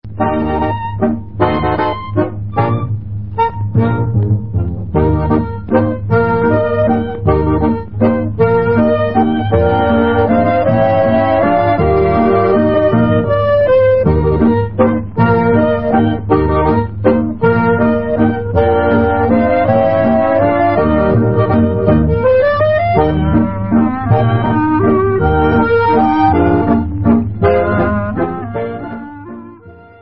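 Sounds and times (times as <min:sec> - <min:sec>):
waltz music: 0:00.0 - 0:29.9.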